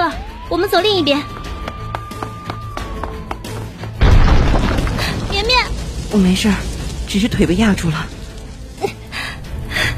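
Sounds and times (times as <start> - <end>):
speech: 0.5 - 1.4, 6.1 - 8.2
loud explosion in a crowded spot: 4.0 - 8.2.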